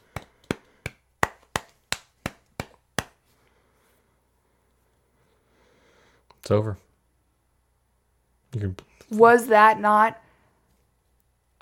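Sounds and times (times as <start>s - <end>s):
quiet golf clap: 0.0s - 3.2s
speech: 6.5s - 6.8s, 8.6s - 10.2s.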